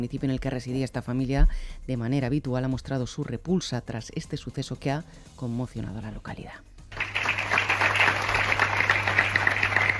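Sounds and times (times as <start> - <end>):
speech: 0.0 - 6.7
applause from townspeople of San Vicente after minute's silence: 6.9 - 9.9.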